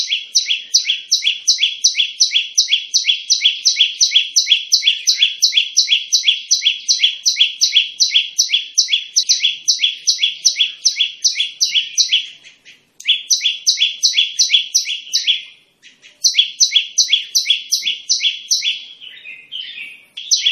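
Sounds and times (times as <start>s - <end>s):
Olive-backed tailorbird song of rapid shrill paired notes: 0.0s - 20.4s.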